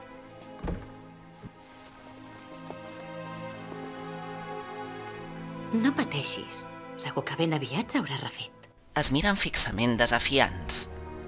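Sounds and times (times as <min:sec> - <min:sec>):
door closing: 0:00.6 - 0:00.9
speech: 0:05.7 - 0:11.0.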